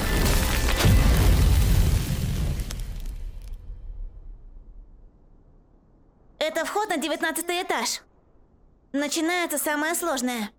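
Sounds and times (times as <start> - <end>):
fire arrow spell explosion: 0.0 - 4.8
speech: 6.5 - 8.1, 8.9 - 10.5.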